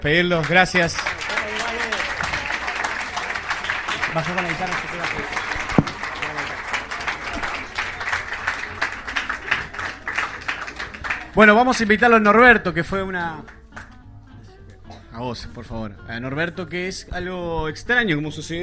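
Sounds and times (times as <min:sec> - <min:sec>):
speech: 0:00.0 - 0:01.2, 0:04.2 - 0:05.4, 0:11.4 - 0:13.6, 0:15.2 - 0:18.6
big round of applause: 0:00.0 - 0:12.0.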